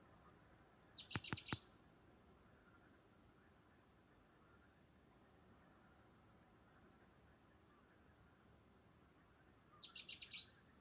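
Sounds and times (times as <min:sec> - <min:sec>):
bird calling at night: 0:00.1 - 0:01.7, 0:09.7 - 0:10.6.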